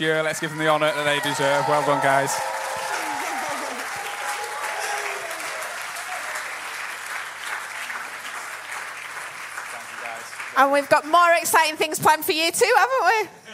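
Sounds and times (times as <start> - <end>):
speech: 0.0 - 2.7, 10.6 - 13.4
large indoor church audience applauding: 0.0 - 11.9
faint cheering voices: 0.4 - 6.6.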